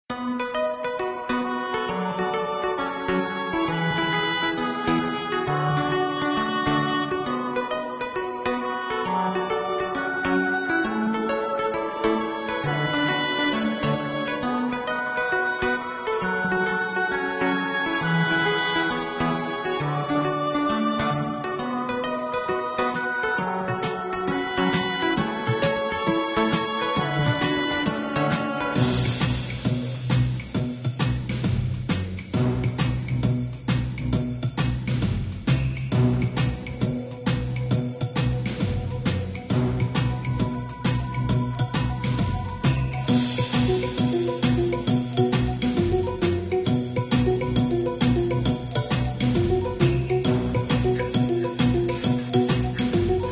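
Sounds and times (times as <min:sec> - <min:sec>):
comic ambient music: 0:00.2 - 0:53.3.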